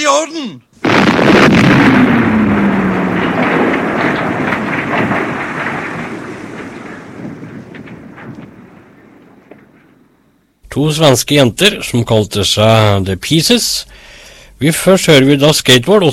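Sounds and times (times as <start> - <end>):
speech: 0.0 - 2.2, 10.8 - 14.0, 14.6 - 16.1
explosion sound effect: 0.8 - 10.4.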